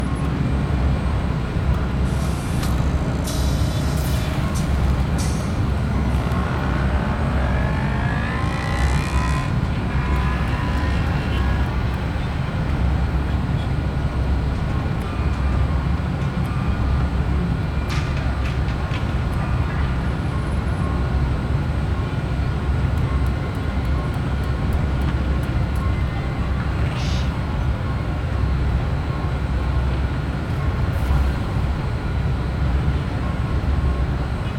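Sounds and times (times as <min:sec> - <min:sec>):
striving chase ambience: 0:00.2 - 0:34.5.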